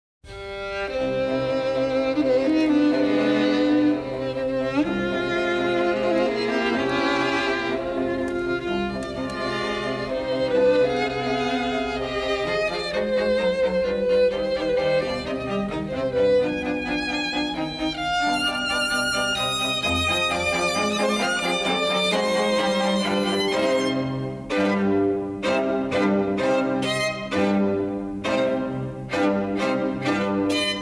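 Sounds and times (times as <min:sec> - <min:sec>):
strings: 0:00.3 - 0:30.8.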